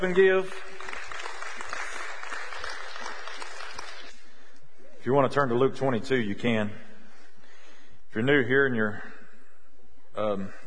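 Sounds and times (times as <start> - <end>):
speech: 0.0 - 0.8, 5.0 - 6.8, 8.2 - 9.2, 10.2 - 10.6
crowd applauding with dense continuous clapping: 0.0 - 4.3.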